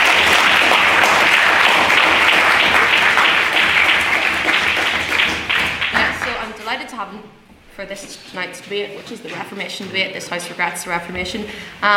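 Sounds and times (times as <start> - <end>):
round of applause: 0.0 - 6.7
speech: 7.8 - 11.9.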